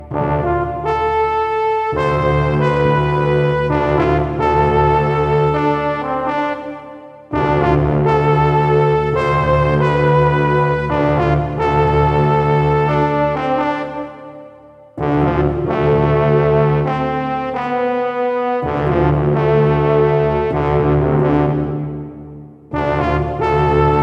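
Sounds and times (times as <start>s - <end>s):
brass loop: 0.0s - 24.0s.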